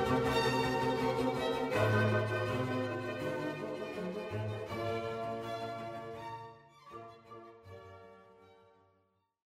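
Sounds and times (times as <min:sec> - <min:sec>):
symphony in E-flat major excerpt: 0:00.0 - 0:06.4.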